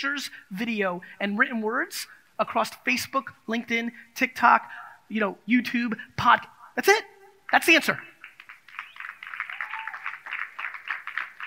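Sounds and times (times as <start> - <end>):
speech: 0.0 - 8.1
smattering of audience claps: 7.5 - 11.4.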